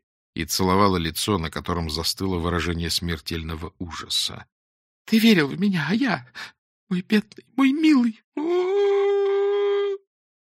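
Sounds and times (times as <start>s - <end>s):
speech: 0.4s - 8.7s
woman howling like a wolf, face raised to the sky: 8.4s - 10.0s.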